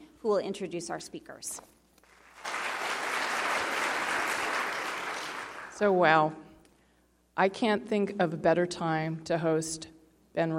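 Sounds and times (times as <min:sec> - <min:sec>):
speech: 0:00.2 - 0:01.8, 0:05.8 - 0:06.5, 0:07.4 - 0:10.5
audience applause: 0:02.1 - 0:05.8.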